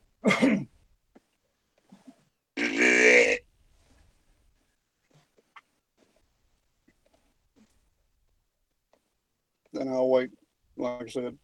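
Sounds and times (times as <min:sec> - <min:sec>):
deer grunt call: 0:02.6 - 0:03.4
speech: 0:09.8 - 0:11.4.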